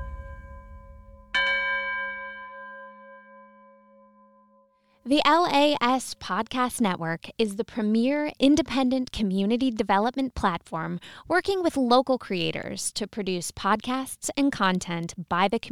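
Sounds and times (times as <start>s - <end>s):
clock chimes striking ten: 1.3s - 2.5s
speech: 5.1s - 15.7s.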